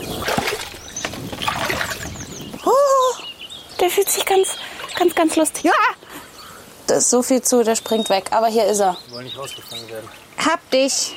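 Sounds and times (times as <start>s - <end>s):
water splashing as someone in rubber boots wades into a frog basin: 0.0s - 2.3s
speech: 3.9s - 6.2s, 6.9s - 11.1s.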